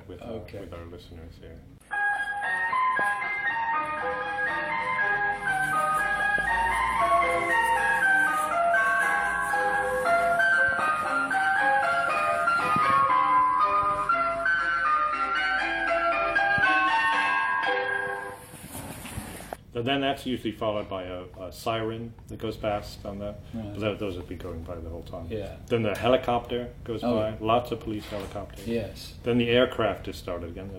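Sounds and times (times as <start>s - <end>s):
speech: 0.1s - 3.2s, 19.8s - 30.7s
ice cream van chime: 1.8s - 18.5s.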